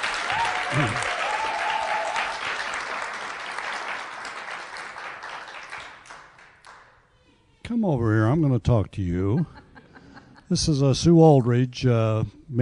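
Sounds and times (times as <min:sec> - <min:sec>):
audience applause: 0:00.0 - 0:06.8
speech: 0:00.3 - 0:01.1, 0:07.8 - 0:09.6, 0:10.5 - 0:12.6.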